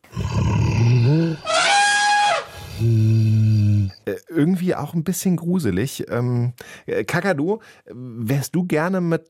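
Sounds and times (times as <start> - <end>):
imagined mammoth call, deep elephant-like trumpet: 0.2 - 4.0
speech: 4.4 - 9.2.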